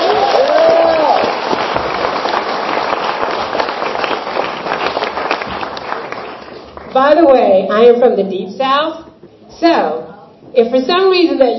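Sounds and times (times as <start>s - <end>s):
person whooping: 0.0s - 1.3s
audience applause at 2015 Trans Pride: 0.0s - 7.0s
speech: 7.0s - 9.0s, 9.6s - 11.5s.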